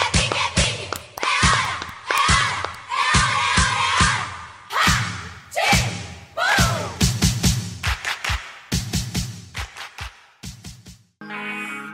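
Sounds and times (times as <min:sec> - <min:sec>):
heavy rhythmic claps or thumps: 0:00.0 - 0:04.2, 0:06.6 - 0:11.0
crowd cheering and shouting: 0:00.0 - 0:07.0.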